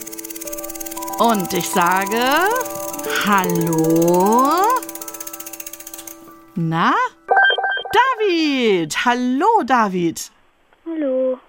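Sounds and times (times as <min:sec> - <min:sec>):
prize wheel spinning and clicking: 0:00.0 - 0:08.0
speech: 0:01.2 - 0:04.8, 0:06.6 - 0:07.1, 0:08.4 - 0:10.3.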